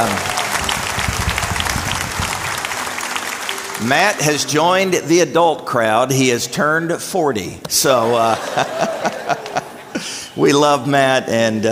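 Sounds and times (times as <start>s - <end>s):
speech: 0.0s - 0.3s, 3.8s - 9.6s, 10.4s - 11.6s
crowd applauding for a birthday: 0.0s - 5.0s, 8.1s - 9.8s
laughter: 7.8s - 10.7s.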